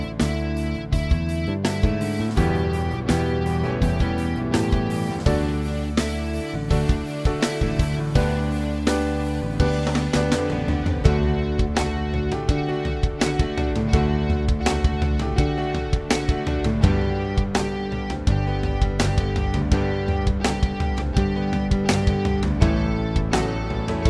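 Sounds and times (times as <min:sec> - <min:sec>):
rock track played on the D string: 0:00.0 - 0:24.0.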